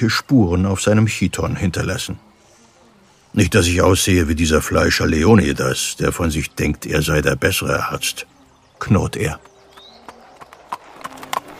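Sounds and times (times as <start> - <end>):
speech: 0.0 - 2.3, 3.4 - 9.5
mule hooves clip-clopping: 8.8 - 11.5.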